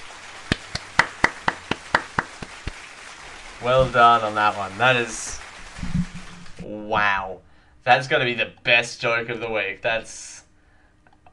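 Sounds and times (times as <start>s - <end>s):
applause: 0.0s - 6.7s
speech: 3.6s - 6.0s, 6.7s - 10.4s.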